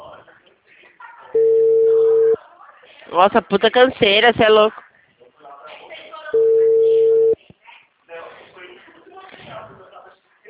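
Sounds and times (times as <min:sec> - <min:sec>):
faint voices: 0:00.0 - 0:10.4
telephone ringback tone on an unanswered call: 0:01.4 - 0:02.4, 0:06.4 - 0:07.4
speech: 0:03.1 - 0:04.8.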